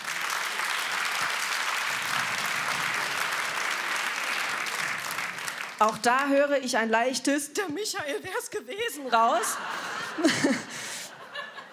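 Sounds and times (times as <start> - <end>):
audience applause: 0.0 - 5.9
speech: 5.8 - 10.9
laughter: 8.9 - 11.7.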